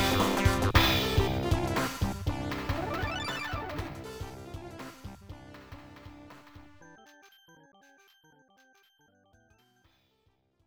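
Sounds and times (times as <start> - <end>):
boss battle background music: 0.0 - 6.8.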